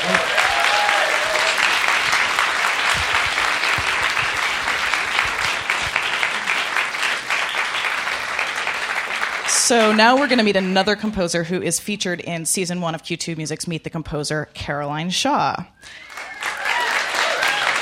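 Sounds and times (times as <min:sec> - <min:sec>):
audience applause: 0:00.0 - 0:10.9, 0:15.9 - 0:17.8
speech: 0:09.7 - 0:16.1.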